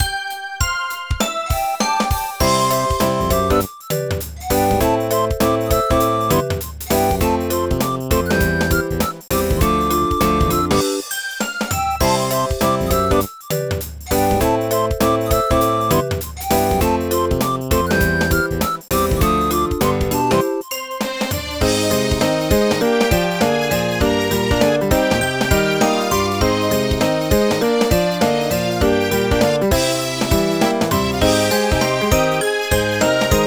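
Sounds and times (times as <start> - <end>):
background music: 0.0 - 33.4.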